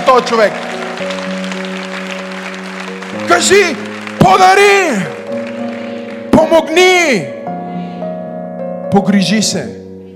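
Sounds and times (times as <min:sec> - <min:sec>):
audience applauding: 0:00.0 - 0:07.0
sustained keyboard or organ chords: 0:00.0 - 0:10.1
speech: 0:00.1 - 0:01.1, 0:03.2 - 0:05.2, 0:06.4 - 0:07.4, 0:08.9 - 0:09.8.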